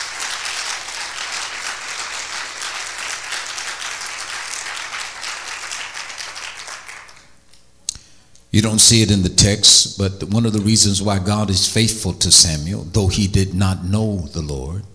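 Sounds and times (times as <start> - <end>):
audience clapping: 0.0 - 7.4
speech: 8.6 - 14.9.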